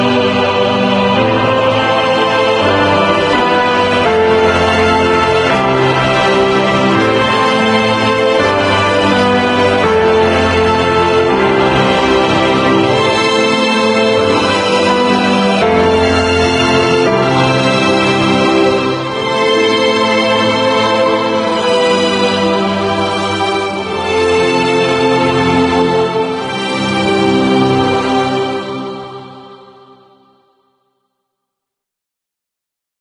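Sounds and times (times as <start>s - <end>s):
strings: 0.0s - 30.2s.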